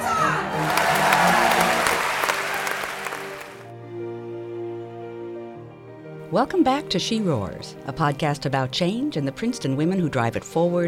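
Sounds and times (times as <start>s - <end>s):
audience roaring and cheering: 0.0s - 3.7s
sustained musical tones: 0.4s - 6.3s
speech: 6.3s - 10.8s.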